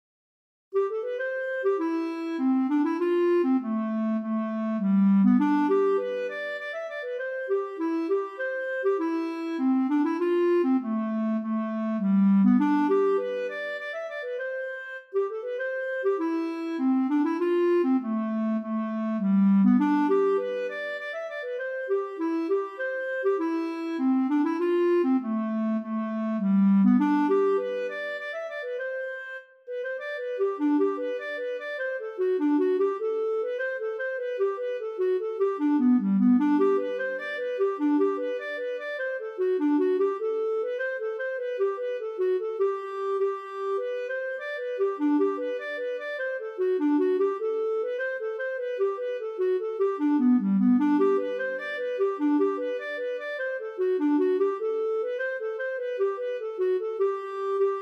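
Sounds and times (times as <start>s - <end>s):
polska dance tune: 0.8s - 57.8s.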